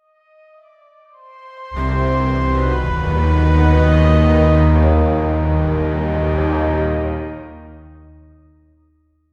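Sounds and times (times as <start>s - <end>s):
thriller music: 1.8s - 8.3s.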